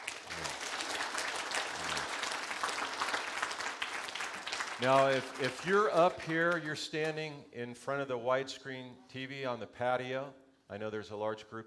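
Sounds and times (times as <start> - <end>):
audience applauding: 0.0 - 6.7
speech: 4.8 - 11.6.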